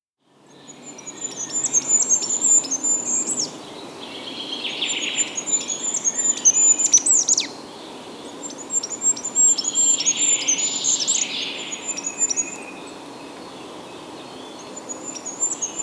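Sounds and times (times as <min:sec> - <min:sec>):
goldcrest singing: 0:00.3 - 0:15.8.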